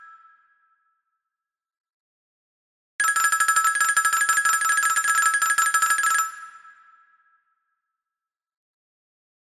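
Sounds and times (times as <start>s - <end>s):
Venezuelan telephone: 3.0s - 6.4s.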